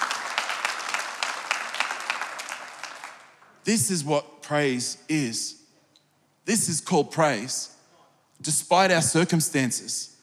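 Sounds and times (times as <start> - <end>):
audience clapping: 0.0 - 3.6
speech: 3.6 - 5.6, 6.4 - 7.8, 8.4 - 10.2.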